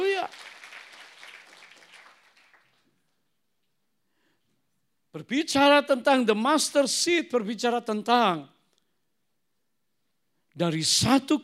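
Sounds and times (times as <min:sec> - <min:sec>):
crowd applauding: 0:00.0 - 0:03.2
speech: 0:05.2 - 0:08.6, 0:10.6 - 0:11.4.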